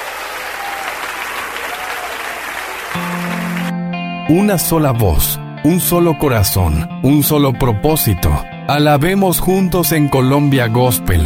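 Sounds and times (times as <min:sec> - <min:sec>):
applause: 0:00.0 - 0:03.8
speech: 0:04.3 - 0:11.2.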